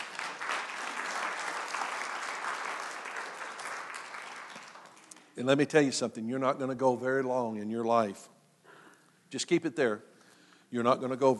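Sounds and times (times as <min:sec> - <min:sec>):
audience clapping: 0:00.0 - 0:05.4
speech: 0:05.4 - 0:08.4, 0:09.3 - 0:10.1, 0:10.7 - 0:11.3.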